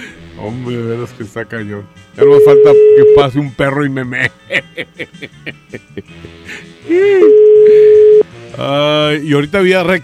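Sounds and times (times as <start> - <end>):
speech: 0.4 - 10.0
telephone call ringing unanswered: 2.2 - 3.3, 7.2 - 8.2
laughter: 4.2 - 6.3.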